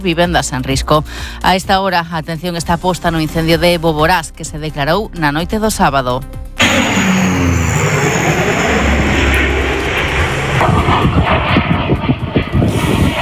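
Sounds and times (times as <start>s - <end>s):
speech: 0.0s - 7.1s
Spanish Air Force firefighting aircraft engines flying overhead: 6.4s - 13.2s.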